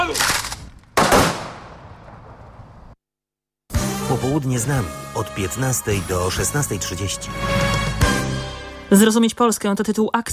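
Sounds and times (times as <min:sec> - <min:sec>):
speech: 0:00.1 - 0:00.5, 0:04.2 - 0:07.8, 0:08.9 - 0:10.3
honorary salute gunfire volleys by an artillery training company: 0:00.2 - 0:02.4.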